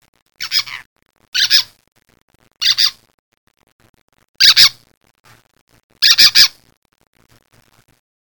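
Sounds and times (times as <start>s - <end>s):
bird harsh raspy squawks: 0.4s - 0.8s, 1.4s - 1.7s, 2.6s - 3.0s, 4.4s - 4.8s, 6.0s - 6.6s.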